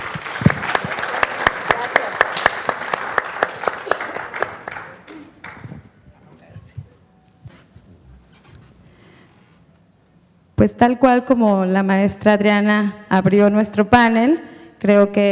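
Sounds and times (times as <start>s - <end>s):
audience applause: 0.0s - 5.9s
speech: 10.7s - 15.3s.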